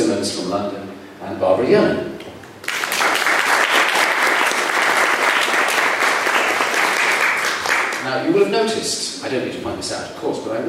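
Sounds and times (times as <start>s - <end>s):
speech: 0.5s - 2.1s, 8.4s - 10.6s
audience applause: 2.6s - 8.0s.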